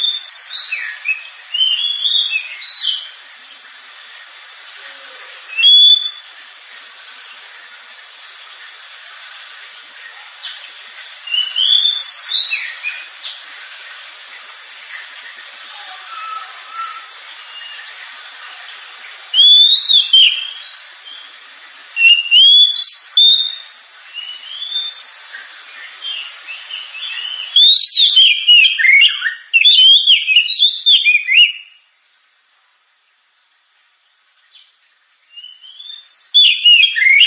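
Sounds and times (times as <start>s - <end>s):
Oriental magpie-robin song: 0.0s - 3.1s, 5.5s - 6.3s, 11.3s - 13.1s, 19.3s - 21.3s, 22.0s - 25.3s, 26.1s - 31.8s, 35.3s - 37.2s
steady hiss: 0.0s - 37.2s
speech: 0.3s - 1.2s, 12.0s - 13.3s.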